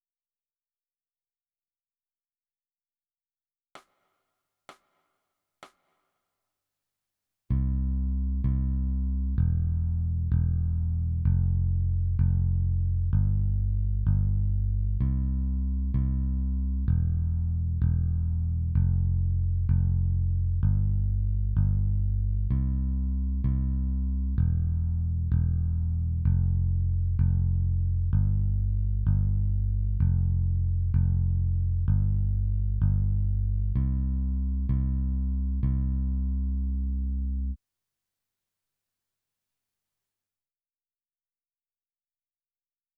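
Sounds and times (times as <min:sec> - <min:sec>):
bass: 0:07.5 - 0:37.6.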